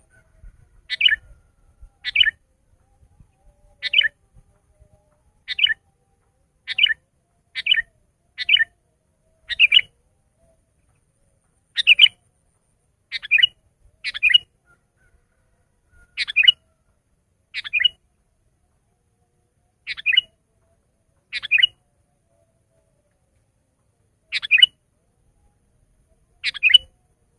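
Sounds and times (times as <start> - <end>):
sooty-headed bulbul singing: 0.0 - 2.4, 3.2 - 4.2, 5.4 - 5.8, 6.6 - 8.7, 9.3 - 9.9, 11.7 - 12.2, 13.1 - 14.5, 16.1 - 16.6, 17.6 - 18.0, 19.8 - 20.4, 21.2 - 22.4, 24.2 - 24.8, 26.1 - 27.1.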